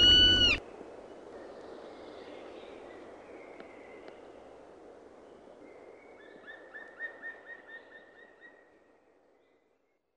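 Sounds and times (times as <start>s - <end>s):
Black woodpecker giving fast repeated ringing calls: 0.0s - 0.6s.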